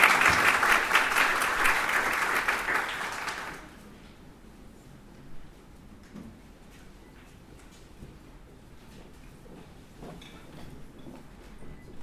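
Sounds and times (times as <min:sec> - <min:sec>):
audience clapping: 0:00.0 - 0:03.8.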